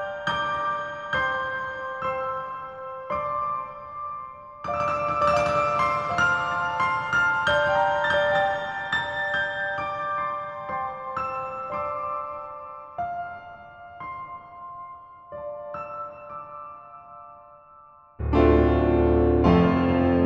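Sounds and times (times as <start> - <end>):
dry piano: 0.0 - 20.2.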